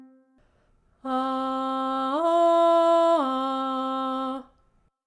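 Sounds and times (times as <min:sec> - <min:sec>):
person doing vocal exercises: 0:01.0 - 0:04.7.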